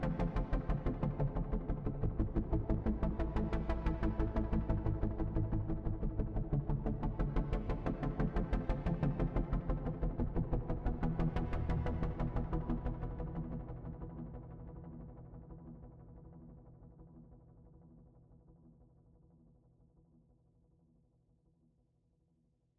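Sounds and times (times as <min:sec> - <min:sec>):
bass: 0:00.0 - 0:18.1.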